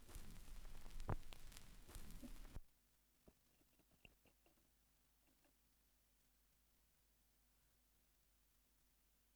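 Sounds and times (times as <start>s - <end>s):
vinyl record noise: 0.0s - 2.7s.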